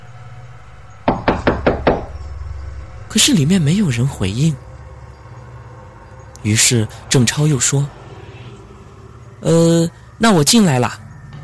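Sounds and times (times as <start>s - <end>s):
forceful knocking on a door: 1.0s - 2.2s
speech: 3.1s - 4.7s, 6.4s - 8.1s, 9.4s - 11.0s.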